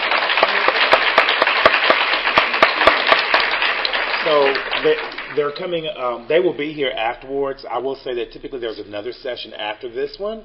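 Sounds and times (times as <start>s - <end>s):
audience applause for speakers: 0.0s - 5.6s
speech: 4.3s - 10.4s.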